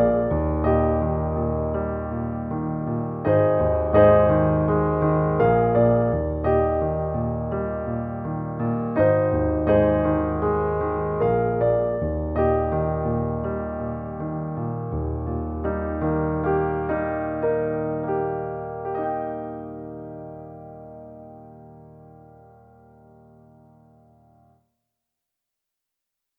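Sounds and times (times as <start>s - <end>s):
piano: 0.0s - 24.7s.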